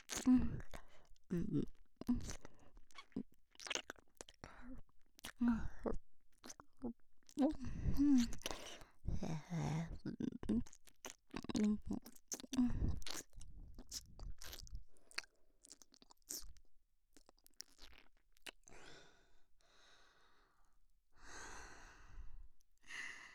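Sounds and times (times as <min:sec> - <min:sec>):
ASMR ear-eating wet mouth smacks: 0:00.0 - 0:04.5, 0:05.2 - 0:18.7.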